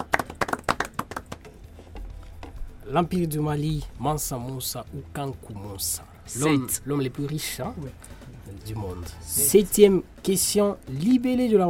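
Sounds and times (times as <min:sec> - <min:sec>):
applause for a student: 0:00.0 - 0:01.5
speech: 0:02.9 - 0:11.6.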